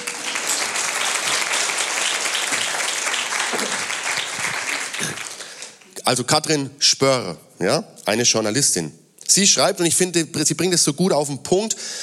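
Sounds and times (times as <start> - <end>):
audience applause: 0.0 - 6.0
speech: 6.1 - 12.0.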